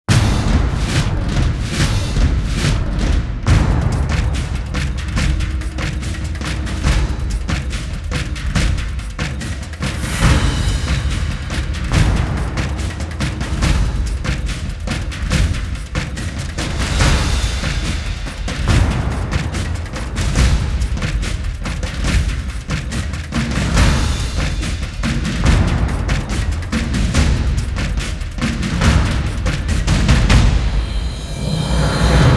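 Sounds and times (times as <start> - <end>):
drums: 0.0 - 32.3.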